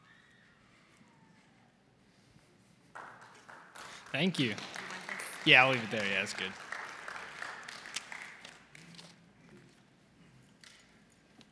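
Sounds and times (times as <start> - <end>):
crowd applauding: 2.9 - 8.9
speech: 4.1 - 4.7, 5.4 - 6.6.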